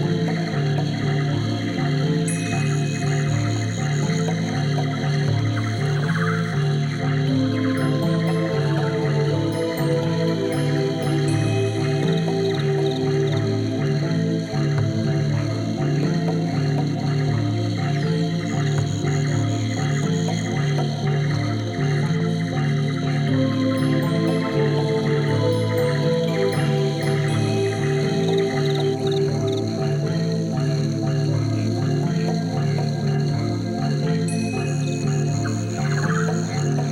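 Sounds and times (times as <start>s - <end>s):
Amazon rainforest ambience: 0.0s - 36.9s.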